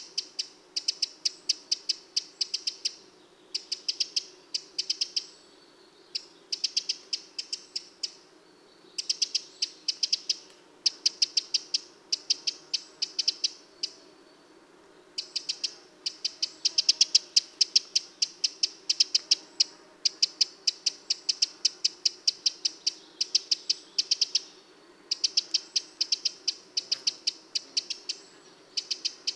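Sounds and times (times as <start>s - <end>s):
Eurasian wren ticking calls: 0.0s - 5.4s, 6.1s - 8.2s, 9.0s - 14.0s, 15.1s - 29.3s.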